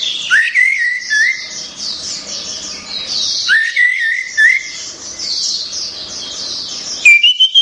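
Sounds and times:
orange-headed thrush song of slurred whistles: 0.3 - 1.5, 3.5 - 4.8, 7.1 - 7.6.

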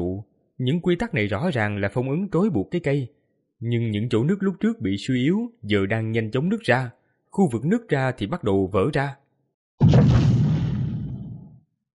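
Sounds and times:
speech: 0.6 - 9.2
deafening explosion sound effect: 9.8 - 11.6.

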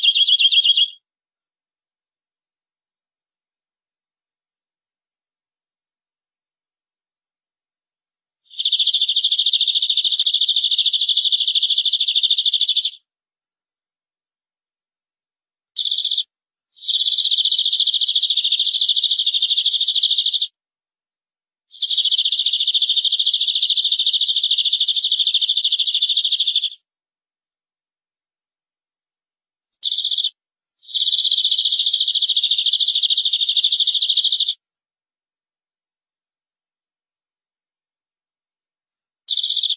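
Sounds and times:
canary song: 0.0 - 1.1, 8.4 - 13.1, 15.8 - 20.6, 21.7 - 26.9, 29.7 - 34.6, 39.2 - 39.7.

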